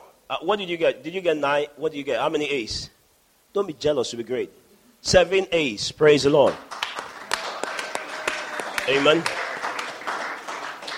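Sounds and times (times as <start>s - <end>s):
speech: 0.3s - 6.8s, 8.9s - 9.4s
audience clapping: 6.4s - 10.9s.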